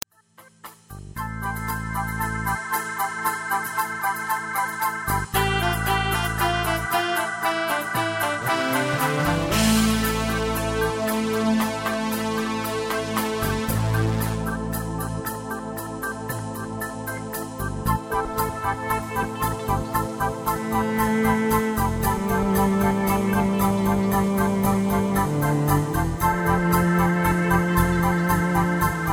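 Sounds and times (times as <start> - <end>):
lead melody: 1.1 - 29.1.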